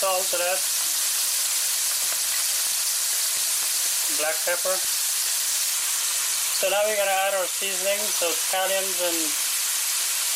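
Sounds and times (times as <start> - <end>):
raw shrimp frying in hot oil in a pan: 0.0 - 10.3
speech: 0.1 - 1.0, 4.2 - 5.0, 6.6 - 9.4.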